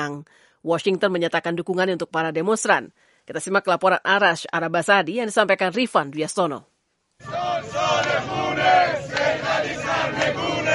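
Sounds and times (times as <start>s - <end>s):
speech: 0.0s - 10.7s
protesters shouting in Tehran: 7.2s - 10.7s.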